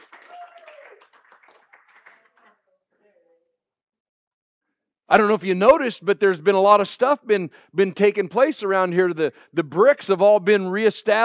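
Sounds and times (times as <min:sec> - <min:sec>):
crowd clapping: 0:00.0 - 0:02.6
whoops and cheering: 0:00.2 - 0:01.0
speech: 0:05.1 - 0:11.2.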